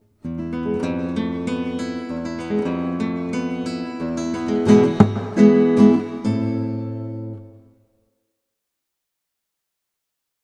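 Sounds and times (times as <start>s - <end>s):
flamenco music in a tavern: 0.2s - 7.5s.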